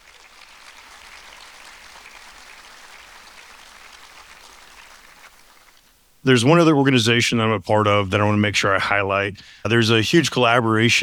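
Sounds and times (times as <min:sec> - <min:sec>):
audience applause: 0:00.0 - 0:05.8
speech: 0:06.2 - 0:11.0.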